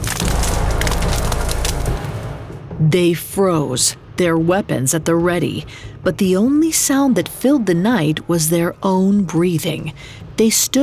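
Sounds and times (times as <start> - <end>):
branches cracking: 0.0 - 2.4
speech: 2.8 - 10.8.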